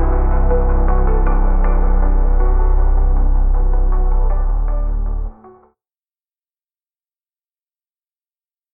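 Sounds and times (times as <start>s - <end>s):
synthwave music: 0.0s - 5.7s.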